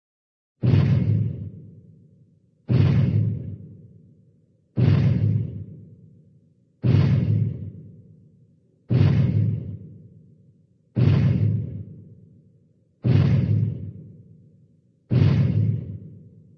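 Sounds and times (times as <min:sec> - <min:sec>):
cartoon giant footsteps: 0:00.6 - 0:01.6, 0:02.7 - 0:03.7, 0:04.8 - 0:05.8, 0:06.8 - 0:07.9, 0:08.9 - 0:10.0, 0:11.0 - 0:12.0, 0:13.0 - 0:14.0, 0:15.1 - 0:16.3.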